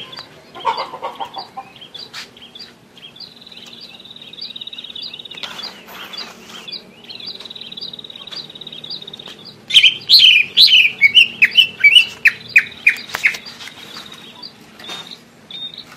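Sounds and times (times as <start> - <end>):
greater green leafbird song: 0.0 - 15.9.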